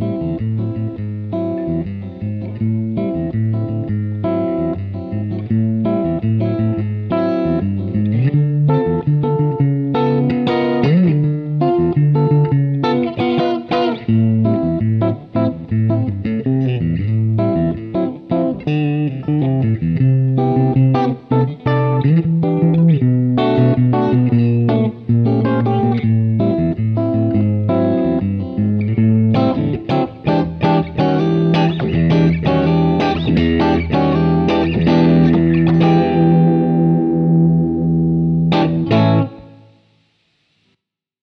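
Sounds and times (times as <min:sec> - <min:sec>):
Strat61 electric guitar test: 0:00.0 - 0:40.7.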